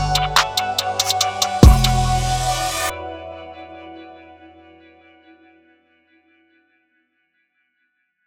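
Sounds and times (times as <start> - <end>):
German rap drum kit: 0.0 - 2.9.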